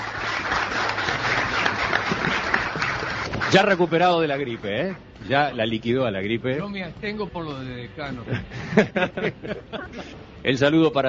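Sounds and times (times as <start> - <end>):
audience applause: 0.0 - 4.9
speech: 3.5 - 11.0
laughter: 8.1 - 10.3.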